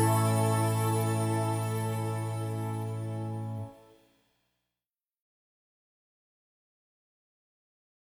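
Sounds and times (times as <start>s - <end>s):
musical accompaniment: 0.0s - 3.8s.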